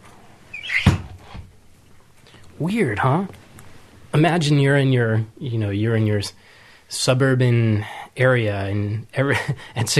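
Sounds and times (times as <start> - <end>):
window being closed: 0.6 - 1.5
speech: 2.6 - 3.4, 4.2 - 9.9.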